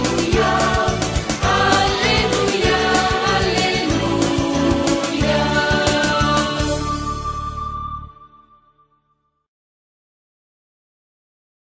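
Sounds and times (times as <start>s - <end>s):
singing: 0.0s - 7.2s.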